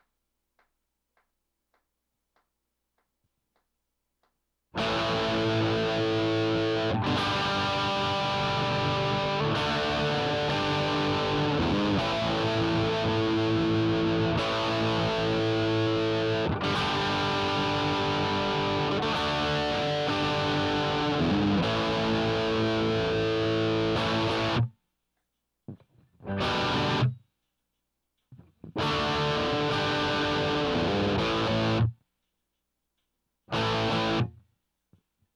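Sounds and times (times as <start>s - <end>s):
guitar playing in A: 4.8s - 24.7s, 26.3s - 27.2s, 28.8s - 31.9s, 33.6s - 34.3s.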